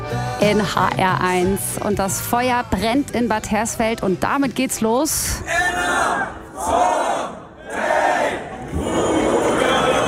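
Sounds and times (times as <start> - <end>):
speech: 0.4 - 7.0
large crowd shouting a festival battle cry in unison: 5.4 - 10.0.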